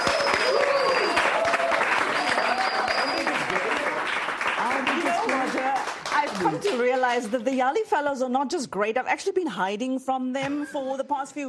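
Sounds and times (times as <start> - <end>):
audience applause: 0.0 - 7.2
speech: 6.5 - 11.4.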